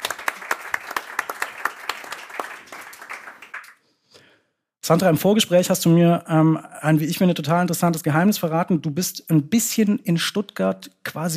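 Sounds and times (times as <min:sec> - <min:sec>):
audience applause: 0:00.0 - 0:03.8
speech: 0:04.9 - 0:11.3.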